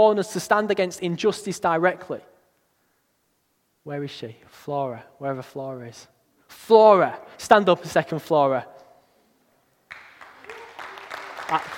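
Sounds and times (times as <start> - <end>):
speech: 0.0 - 2.3, 3.9 - 8.7, 11.5 - 11.7
audience clapping: 9.9 - 11.7.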